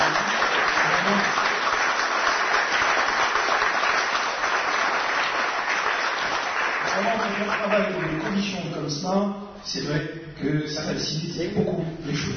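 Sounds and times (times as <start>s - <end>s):
audience applauding loudly: 0.0s - 8.6s
speech: 7.8s - 12.3s.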